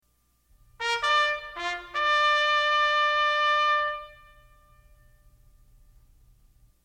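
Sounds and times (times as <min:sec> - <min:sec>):
bugle call: 0:00.8 - 0:05.2.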